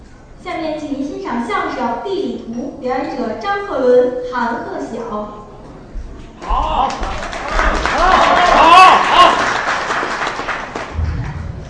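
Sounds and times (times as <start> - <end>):
speech: 0.4 - 5.4
audience voices cheering: 6.4 - 9.7
audience applause: 6.7 - 11.3.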